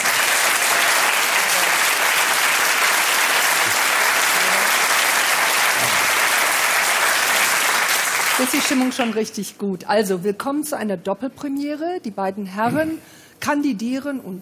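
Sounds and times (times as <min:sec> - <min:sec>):
audience applause: 0:00.0 - 0:09.2
speech: 0:08.4 - 0:14.4.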